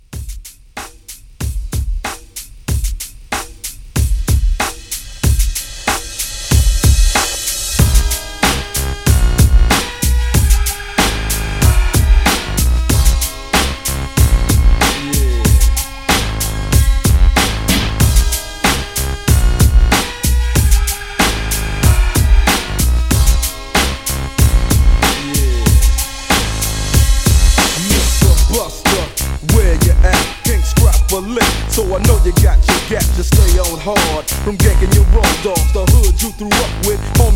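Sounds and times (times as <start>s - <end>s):
1990s old school hip hop: 0.1s - 37.3s.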